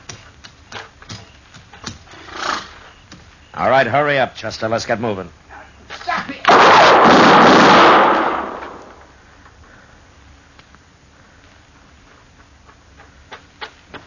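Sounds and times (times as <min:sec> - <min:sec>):
speech: 0:03.6 - 0:05.4
gunshot fired from an alley: 0:06.5 - 0:09.0.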